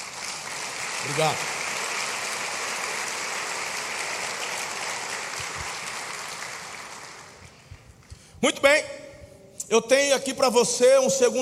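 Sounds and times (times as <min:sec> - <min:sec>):
audience applauding: 0:00.0 - 0:07.7
speech: 0:01.0 - 0:01.5, 0:08.4 - 0:09.0, 0:09.7 - 0:11.4.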